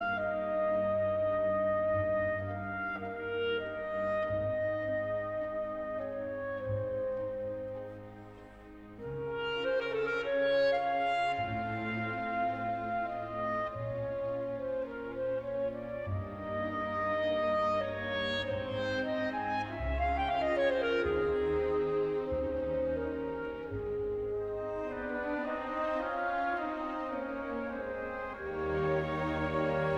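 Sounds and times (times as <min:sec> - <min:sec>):
adagio movement of a clarinet concerto: 0:00.0 - 0:29.9.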